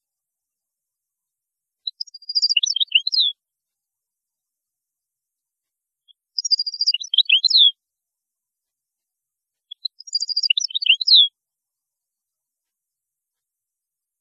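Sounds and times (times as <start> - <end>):
European goldfinch twittering: 1.9 - 3.3, 6.4 - 7.7, 9.8 - 11.3.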